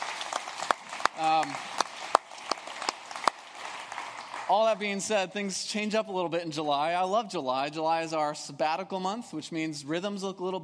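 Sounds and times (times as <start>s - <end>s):
sparse hand claps in a roomy space: 0.0s - 4.5s
speech: 1.2s - 1.7s, 4.5s - 10.6s.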